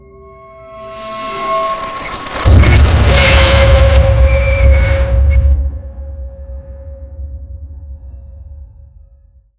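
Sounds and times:
metal music: 0:00.8 - 0:05.6.

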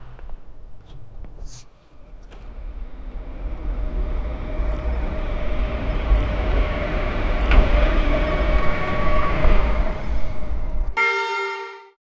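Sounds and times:
transport vehicle accelerating: 0:02.0 - 0:11.0.

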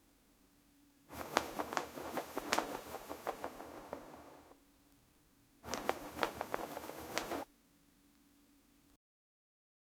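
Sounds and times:
fabric cloth flapping and fluttering: 0:01.1 - 0:04.6, 0:05.6 - 0:07.5.

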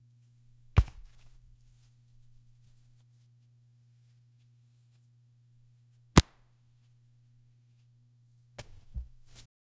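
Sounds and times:
heavy leather pop of baseball: 0:00.7 - 0:01.4, 0:06.2 - 0:06.4, 0:08.6 - 0:09.5.

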